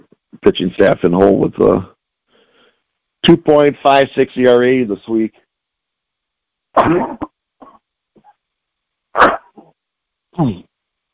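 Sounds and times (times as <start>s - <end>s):
speech: 0.5s - 1.9s, 3.2s - 5.4s, 6.8s - 7.2s, 10.4s - 10.7s
person sneezing: 6.8s - 8.3s, 9.2s - 9.7s, 10.4s - 10.6s.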